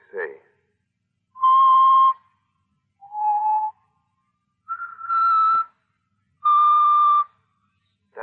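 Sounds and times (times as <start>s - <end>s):
person whistling a tune: 1.4s - 2.3s, 3.0s - 3.8s, 4.7s - 5.8s, 6.4s - 7.4s.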